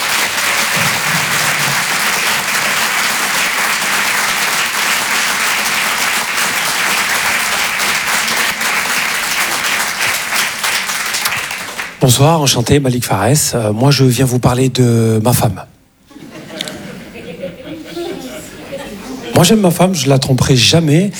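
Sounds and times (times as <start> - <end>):
laughter: 0.0 - 4.7, 16.1 - 19.9
audience applause at a comedy club in a Paris theatre: 0.0 - 12.0
speech: 12.0 - 15.7, 19.4 - 21.1.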